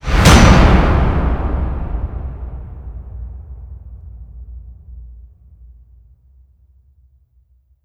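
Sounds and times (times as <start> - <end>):
swish: 0.0 - 3.1
impact hit: 0.0 - 5.1.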